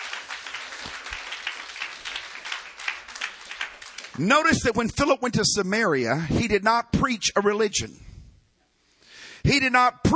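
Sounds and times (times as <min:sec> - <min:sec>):
audience clapping hands: 0:00.0 - 0:04.8
speech: 0:04.2 - 0:08.1, 0:09.4 - 0:10.1.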